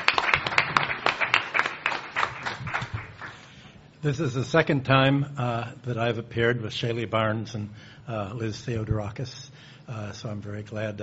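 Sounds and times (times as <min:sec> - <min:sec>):
audience applause welcoming a lecturer: 0:00.0 - 0:03.4
speech: 0:04.0 - 0:11.0.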